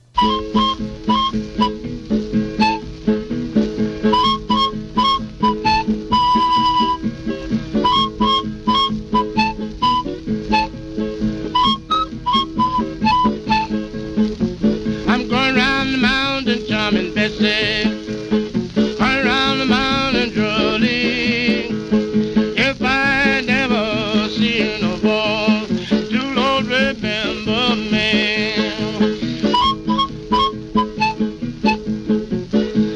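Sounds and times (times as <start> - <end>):
quills panpipe playing: 0.0 - 1.8, 2.6 - 2.9, 4.1 - 7.0, 7.8 - 10.8, 11.5 - 13.9, 28.5 - 31.9
blues guitar song: 0.0 - 32.9.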